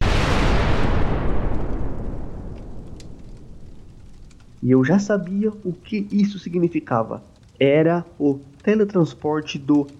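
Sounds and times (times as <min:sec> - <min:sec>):
fireball explosion sound effect: 0:00.0 - 0:06.1
speech: 0:04.6 - 0:09.9.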